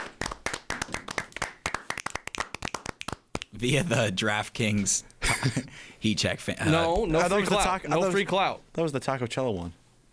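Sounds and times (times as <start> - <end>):
people clapping: 0.0 - 3.6
speech: 3.6 - 9.8.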